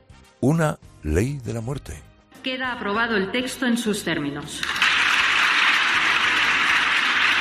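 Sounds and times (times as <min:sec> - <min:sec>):
speech: 0:00.2 - 0:04.8
applause in parliament: 0:04.6 - 0:07.4.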